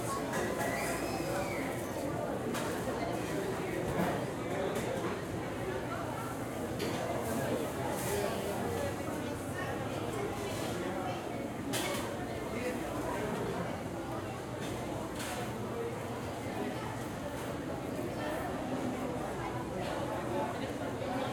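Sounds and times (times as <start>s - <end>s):
crowd in a shopping mall food court restaurant: 0.0s - 21.3s.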